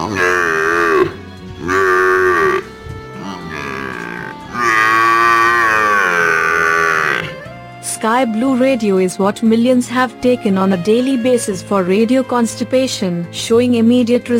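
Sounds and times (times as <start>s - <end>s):
water buffalo bellowing: 0.0s - 7.6s
speech: 8.0s - 14.3s.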